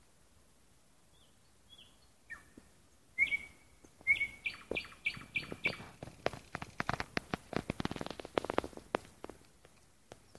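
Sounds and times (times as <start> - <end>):
nightingale song with whistle and rattling notes: 3.2 - 10.3.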